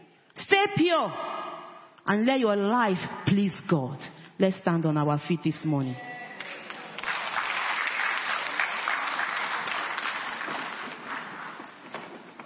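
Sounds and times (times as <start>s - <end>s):
speech: 0.6s - 1.3s, 2.0s - 6.1s
audience clapping: 6.3s - 12.4s.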